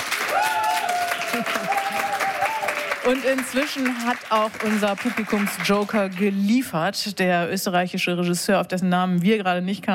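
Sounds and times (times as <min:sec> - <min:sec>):
audience applause: 0:00.0 - 0:06.4
speech: 0:01.3 - 0:02.0, 0:03.0 - 0:09.9.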